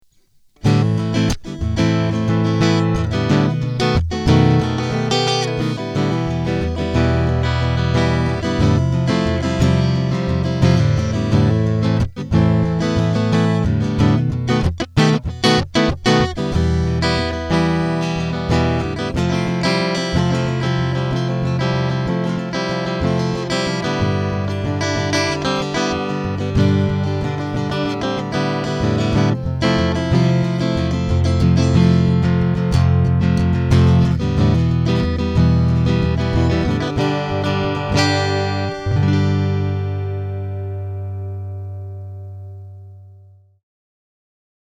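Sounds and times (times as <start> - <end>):
Ibanez TCM50 guitar strumming with full EQ: 0.0 - 43.3.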